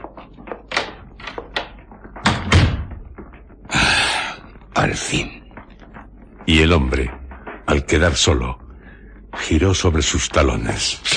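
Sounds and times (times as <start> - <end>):
door being pushed closed with clicks, scuffs and a heavy thump: 2.2 - 3.2
speech: 4.8 - 5.4, 6.5 - 8.6, 9.4 - 11.1.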